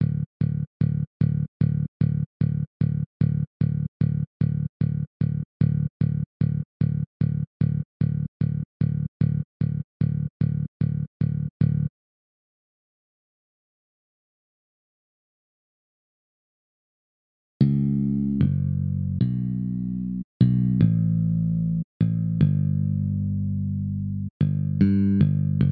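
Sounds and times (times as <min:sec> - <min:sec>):
bass: 0:00.0 - 0:11.9, 0:17.6 - 0:25.7.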